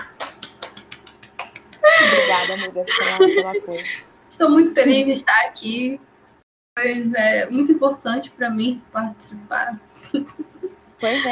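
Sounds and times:
one person clapping hands: 0.2 - 1.9
laughter: 1.8 - 3.9, 10.0 - 11.2
speech: 2.1 - 6.1, 6.8 - 11.2.

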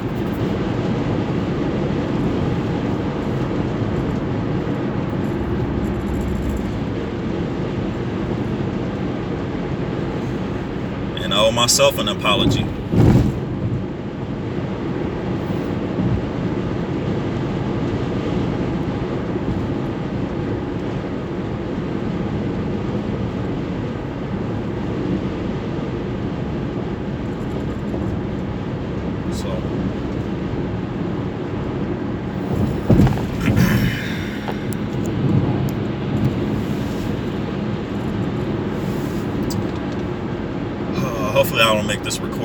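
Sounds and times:
car engine and road-noise rumble on a long road trip: 0.0 - 42.4
speech: 11.5 - 12.8
bumps and thuds: 12.4 - 13.8, 32.4 - 35.6.

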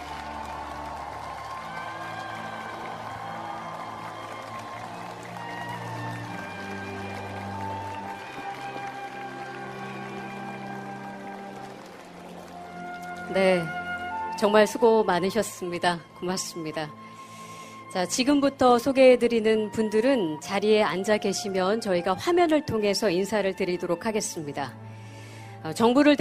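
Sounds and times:
crowd applause: 0.0 - 13.4
speech: 13.3 - 13.8, 14.4 - 17.0, 18.0 - 24.8, 25.6 - 26.1.

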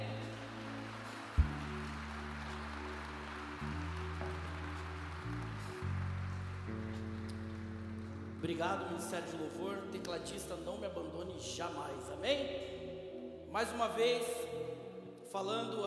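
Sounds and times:
audience applause: 0.2 - 8.2
speech: 8.4 - 12.8, 13.5 - 14.7, 15.3 - 15.8.

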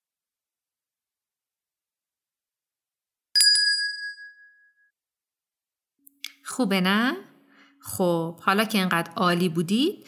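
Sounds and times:
bell struck during a listening exercise: 3.4 - 4.9
speech: 6.4 - 10.0.

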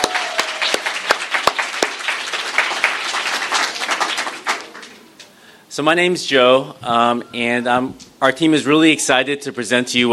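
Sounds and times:
audience applause: 0.0 - 5.1
speech: 5.8 - 10.1.

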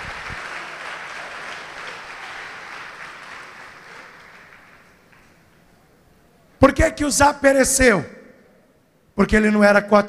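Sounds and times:
audience applauding: 0.0 - 5.6
speech: 6.6 - 8.2, 9.2 - 10.0.

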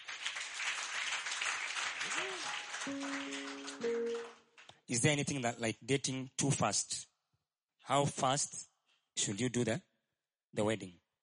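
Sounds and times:
audience clapping: 0.0 - 4.9
speech: 2.0 - 7.1, 7.9 - 9.9, 10.5 - 11.0.

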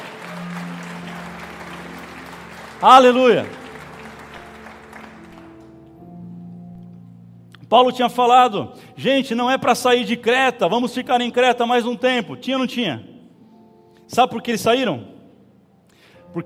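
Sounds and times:
audience applauding: 0.0 - 6.0
speech: 2.8 - 3.6, 7.7 - 13.1, 14.1 - 15.1.

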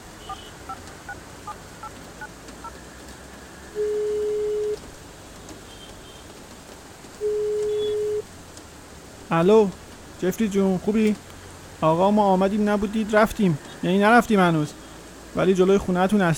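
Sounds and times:
rain-like hiss: 0.0 - 16.3
dialing beeps: 3.8 - 4.8, 7.2 - 8.2
speech: 9.3 - 16.3.

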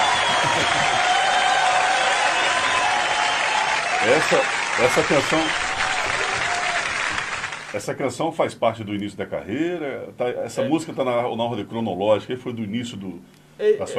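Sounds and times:
laughter: 0.0 - 1.5
applause sound effect: 0.0 - 7.8
speech: 4.0 - 5.6, 7.7 - 13.9.

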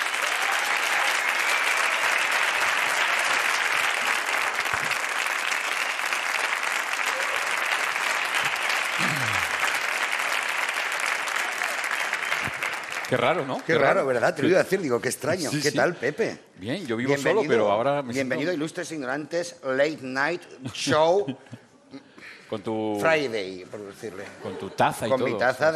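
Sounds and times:
audience applause: 0.0 - 14.4
speech: 13.1 - 21.6, 22.5 - 25.7.

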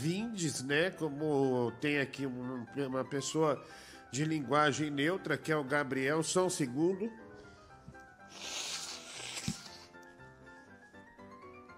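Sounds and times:
speech: 0.0 - 7.2
nose sniffling: 8.2 - 10.0.

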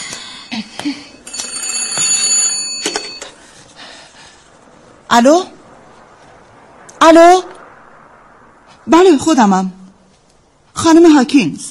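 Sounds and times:
telephone ringing: 1.2 - 3.4
speech: 5.1 - 5.5, 7.0 - 7.5, 8.8 - 9.8, 10.8 - 11.6.

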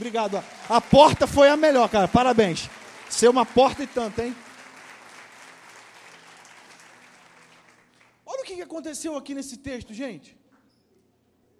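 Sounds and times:
speech: 0.0 - 4.5, 8.5 - 10.4
audience applauding the actors: 0.0 - 8.2.

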